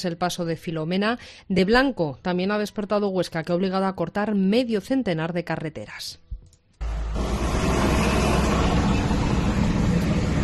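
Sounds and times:
speech: 0:00.0 - 0:06.2
heavy fire truck engine roaring while clearing snow from a road: 0:06.8 - 0:10.4.

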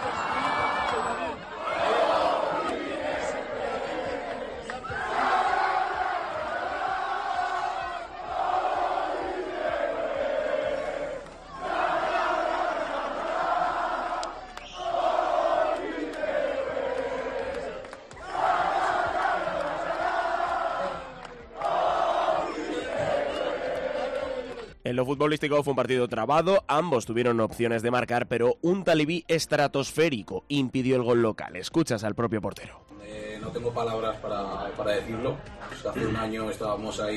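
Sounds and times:
football crowd chanting in celebration of promotion: 0:00.0 - 0:24.7
speech: 0:24.9 - 0:37.1.

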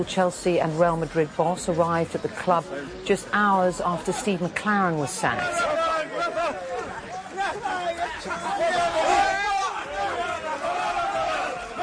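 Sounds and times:
speech: 0:00.0 - 0:06.6
fans cheering and shouting: 0:05.2 - 0:11.8.

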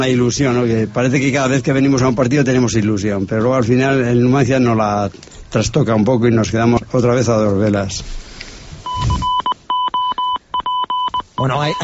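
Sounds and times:
speech: 0:00.0 - 0:08.2, 0:11.4 - 0:11.8
mobile phone ringing: 0:08.9 - 0:11.8.

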